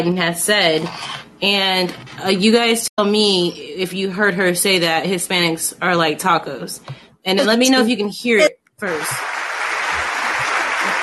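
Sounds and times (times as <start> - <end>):
speech: 0.0 - 9.4
crowd applauding: 9.0 - 11.0.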